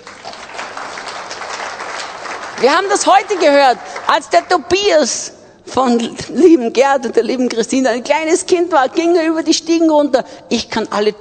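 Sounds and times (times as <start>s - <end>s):
audience clapping: 0.0s - 4.8s
speech: 2.6s - 11.1s.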